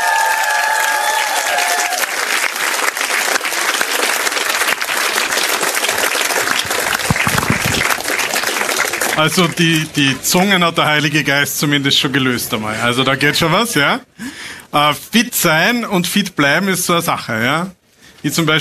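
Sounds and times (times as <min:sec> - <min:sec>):
audience applause: 0:00.0 - 0:10.1
speech: 0:09.2 - 0:14.1, 0:14.7 - 0:18.5.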